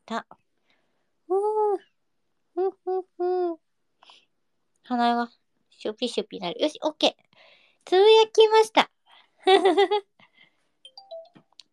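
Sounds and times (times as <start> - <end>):
speech: 0.1 - 0.4, 2.6 - 3.6, 4.9 - 10.1
person humming: 1.3 - 1.8, 2.6 - 3.6
LINE app notification sound: 10.9 - 11.5.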